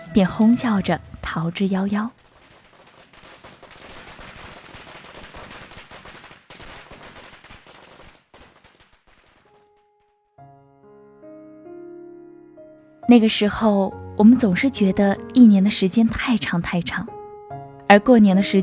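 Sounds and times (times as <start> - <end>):
firecrackers exploding: 0.0 - 10.2
speech: 0.1 - 2.2, 13.1 - 17.2, 17.9 - 18.6.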